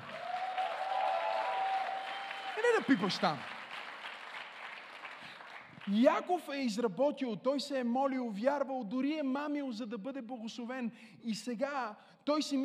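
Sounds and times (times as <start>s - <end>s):
audience applause: 0.0s - 5.9s
speech: 2.6s - 3.6s, 5.9s - 12.6s.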